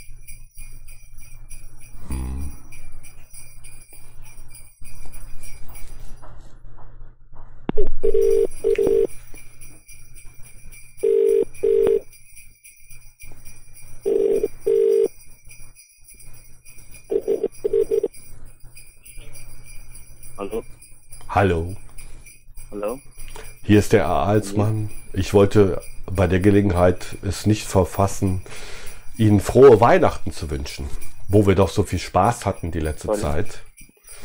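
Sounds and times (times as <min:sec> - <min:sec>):
telephone ringing: 0:08.0 - 0:09.1, 0:11.0 - 0:12.0, 0:14.0 - 0:15.1, 0:17.1 - 0:18.1
speech: 0:21.4 - 0:21.8, 0:23.7 - 0:34.2.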